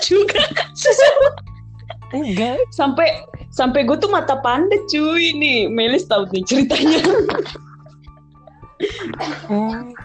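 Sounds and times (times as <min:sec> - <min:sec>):
laughter: 0:00.0 - 0:02.6, 0:06.4 - 0:10.0
speech: 0:02.1 - 0:07.7, 0:08.8 - 0:10.0
person coughing: 0:08.8 - 0:09.8.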